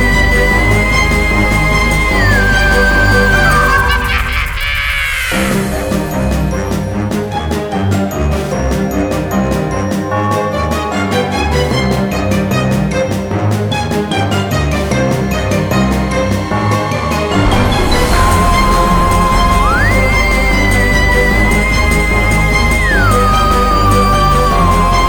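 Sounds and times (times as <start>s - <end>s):
scary creepy spooky Halloween background music: 0.0s - 25.0s
laughter: 2.2s - 6.2s.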